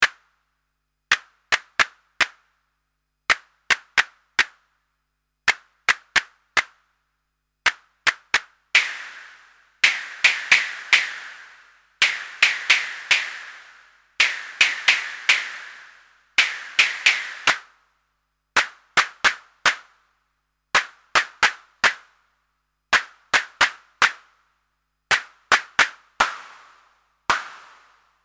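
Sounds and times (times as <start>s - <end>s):
hand clap: 1.1s - 2.4s, 3.3s - 4.6s, 5.5s - 6.8s, 7.7s - 17.7s, 18.6s - 19.9s, 20.8s - 22.1s, 23.0s - 24.3s, 25.1s - 28.0s.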